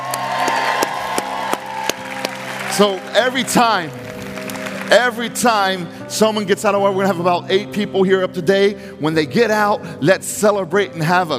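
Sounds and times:
sharp rhythmic claps: 0.0s - 5.0s
audience cheering and shouting: 0.0s - 5.2s
speech: 2.8s - 4.1s, 4.9s - 11.3s.

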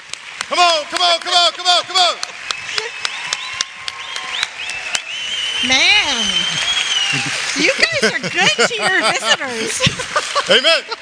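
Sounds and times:
church congregation clapping to welcome a guest speaker: 0.0s - 11.0s
church congregation cheering: 0.3s - 11.0s
speech: 0.5s - 3.3s, 5.6s - 11.0s
laughter: 1.0s - 3.0s, 6.0s - 11.0s
whistling: 2.4s - 7.3s.

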